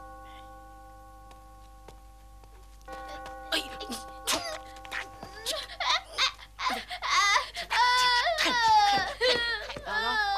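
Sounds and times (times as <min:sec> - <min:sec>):
child crying in a dramatized scene of Granny Liu's visit to the Rongguo mansion: 0:03.1 - 0:10.3.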